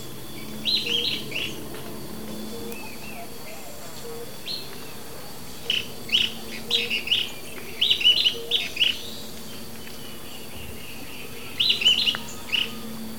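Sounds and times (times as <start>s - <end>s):
Sooty-headed Tyrannulet calling in Ecuador: 0.0s - 13.0s.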